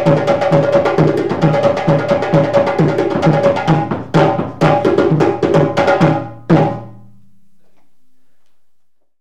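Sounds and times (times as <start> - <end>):
drums for dancing: 0.0 - 7.1.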